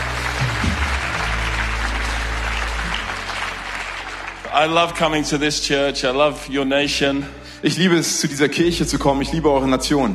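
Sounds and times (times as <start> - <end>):
audience applauding a band: 0.0 - 5.4
speech: 4.6 - 10.1.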